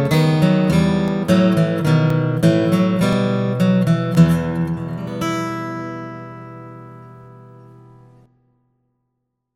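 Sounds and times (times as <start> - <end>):
bluegrass guitar playing: 0.0 - 8.3.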